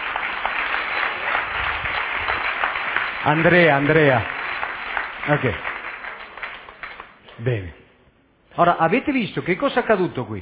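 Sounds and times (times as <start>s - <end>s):
audience applause: 0.0s - 7.2s
speech: 3.2s - 4.3s, 5.2s - 5.7s, 7.4s - 7.8s, 8.6s - 10.3s.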